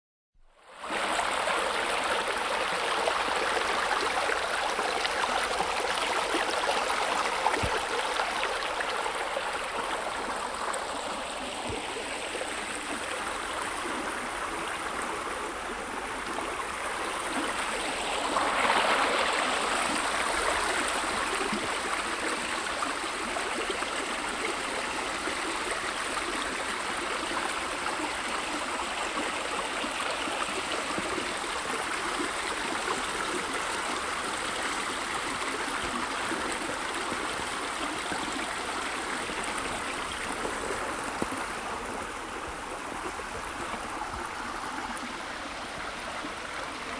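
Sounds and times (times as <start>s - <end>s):
calm waves: 0.4s - 46.9s.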